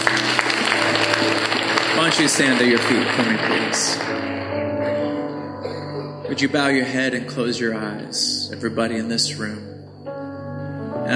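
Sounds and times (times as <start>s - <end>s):
audience clapping: 0.0s - 5.2s
speech: 2.2s - 4.7s, 6.3s - 9.8s.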